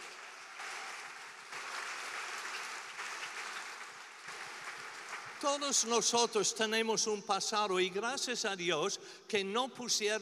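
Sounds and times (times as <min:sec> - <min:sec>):
audience applause: 0:00.0 - 0:05.9
speech: 0:05.4 - 0:10.2.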